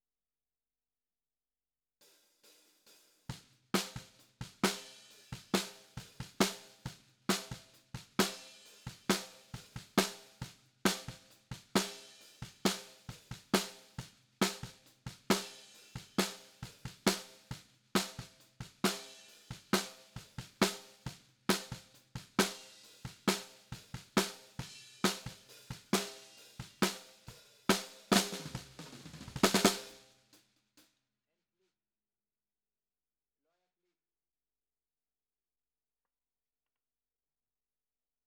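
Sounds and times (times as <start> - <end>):
snare drum: 2.5 - 30.1.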